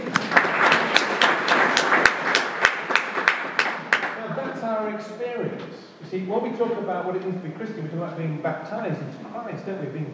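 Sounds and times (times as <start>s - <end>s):
crowd clapping: 0.0s - 4.2s
speech: 6.2s - 10.1s.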